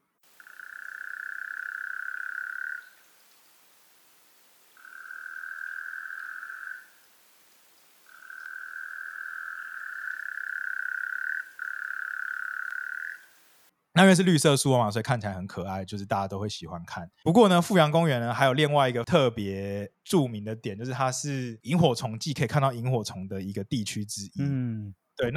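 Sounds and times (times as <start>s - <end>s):
frog calling with a barking-like croak from mud: 0.0s - 13.7s
speech: 14.0s - 25.3s.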